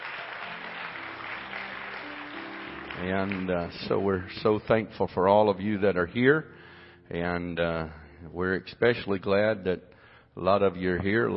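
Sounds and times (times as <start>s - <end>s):
audience hand clapping: 0.0s - 4.6s
speech: 3.0s - 11.3s.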